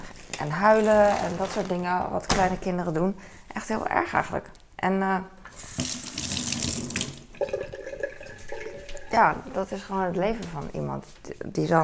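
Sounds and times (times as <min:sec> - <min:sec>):
speech: 0:00.4 - 0:06.0, 0:09.2 - 0:11.8
tap water running into a sink while washing strawberries: 0:05.5 - 0:09.4.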